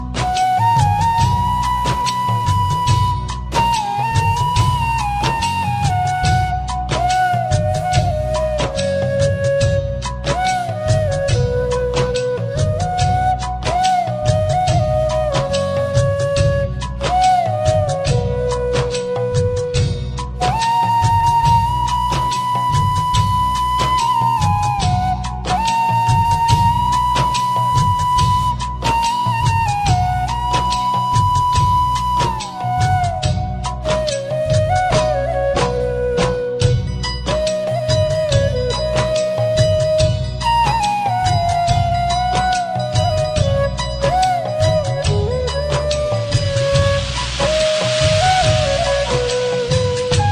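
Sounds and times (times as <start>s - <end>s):
flute playing an old song: 0.0s - 50.2s.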